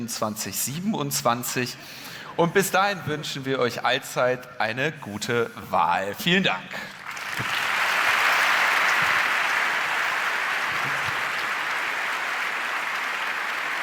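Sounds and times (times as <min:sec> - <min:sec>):
speech: 0:00.0 - 0:07.5
audience applause: 0:06.9 - 0:13.8.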